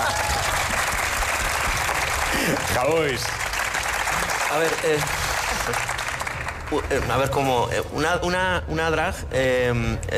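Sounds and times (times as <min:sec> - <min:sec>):
audience applause: 0:00.0 - 0:07.3
speech: 0:02.4 - 0:03.4, 0:04.5 - 0:06.0, 0:06.7 - 0:10.1.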